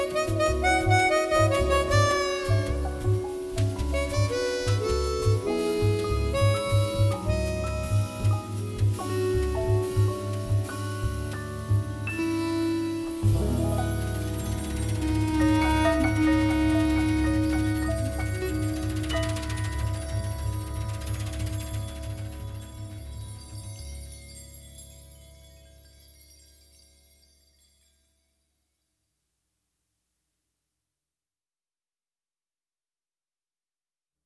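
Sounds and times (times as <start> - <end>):
waltz music: 0.0 - 26.7.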